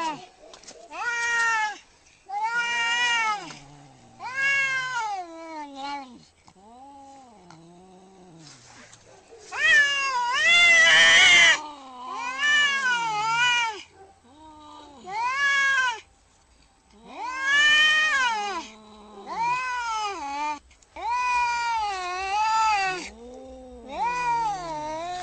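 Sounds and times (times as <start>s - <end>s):
domestic cat yowling angrily: 0.9s - 3.6s, 4.2s - 6.2s, 9.5s - 16.0s, 17.0s - 25.2s.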